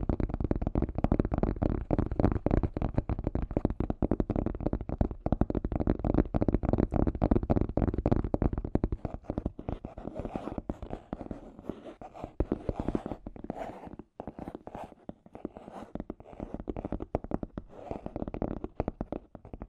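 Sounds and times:
scratchy tapping: 0:01.0 - 0:19.6.

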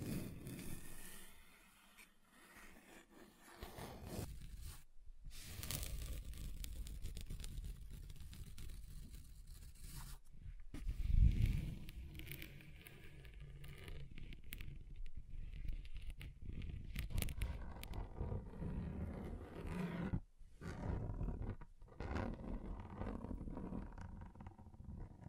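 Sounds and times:
scratching across a table surface: 0:00.0 - 0:10.2, 0:10.8 - 0:25.2.

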